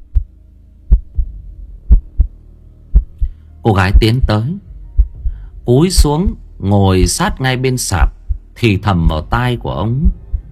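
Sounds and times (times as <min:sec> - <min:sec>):
heartbeat thumping in a chest: 0:00.0 - 0:00.3, 0:00.9 - 0:06.4, 0:07.0 - 0:07.4, 0:08.0 - 0:09.4, 0:10.0 - 0:10.5
faint low hum: 0:00.0 - 0:10.5
speech: 0:03.6 - 0:04.7, 0:05.7 - 0:10.2.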